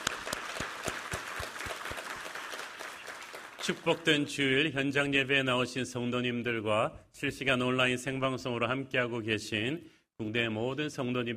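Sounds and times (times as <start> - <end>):
audience applause: 0.0 - 4.3
speech: 3.7 - 11.3.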